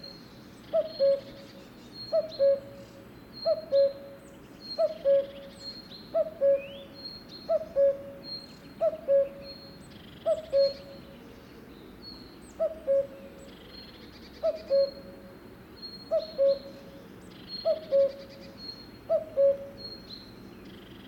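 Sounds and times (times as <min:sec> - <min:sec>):
cuckoo calling: 0:00.0 - 0:01.5, 0:02.1 - 0:11.2, 0:12.6 - 0:13.5, 0:14.4 - 0:20.2
other birds whistling: 0:00.8 - 0:11.1, 0:14.4 - 0:15.1, 0:15.8 - 0:20.3.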